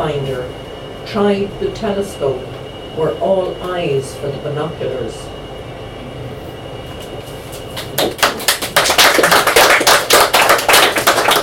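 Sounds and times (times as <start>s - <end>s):
speech: 0.0s - 5.4s
audience clapping: 7.8s - 11.4s.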